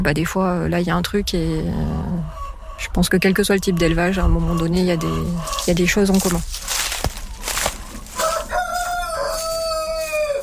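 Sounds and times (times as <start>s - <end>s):
speech: 0.0s - 2.2s, 2.8s - 6.8s
short clucks: 1.8s - 10.4s
scratchy noises: 2.9s - 10.4s
rooster crowing: 7.6s - 10.4s.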